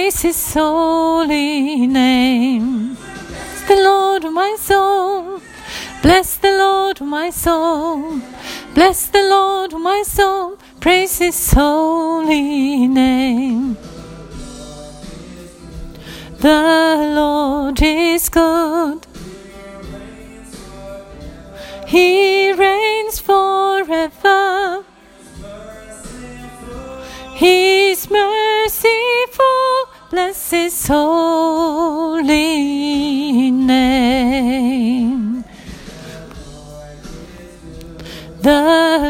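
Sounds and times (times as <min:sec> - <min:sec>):
soprano voice: 0:00.0 - 0:13.8, 0:16.4 - 0:19.1, 0:21.7 - 0:24.9, 0:27.0 - 0:35.6, 0:38.0 - 0:39.0
bass: 0:00.0 - 0:24.4, 0:25.0 - 0:29.4, 0:30.1 - 0:39.0.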